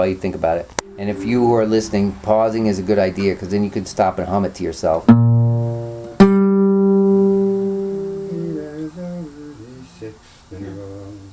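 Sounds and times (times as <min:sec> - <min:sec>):
speech: 0:00.0 - 0:05.3
musical interval of a sixth played: 0:00.8 - 0:04.2, 0:05.0 - 0:09.4.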